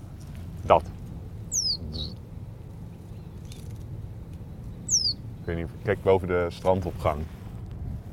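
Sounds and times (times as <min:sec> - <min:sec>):
speech: 0:00.6 - 0:01.0, 0:05.5 - 0:07.4
reed bunting metallic call: 0:01.5 - 0:02.2, 0:04.8 - 0:05.2.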